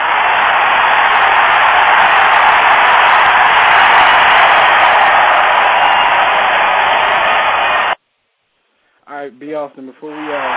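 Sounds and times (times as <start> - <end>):
crowd cheering wildly: 0.0 - 8.0, 9.8 - 10.5
speech: 9.5 - 10.5.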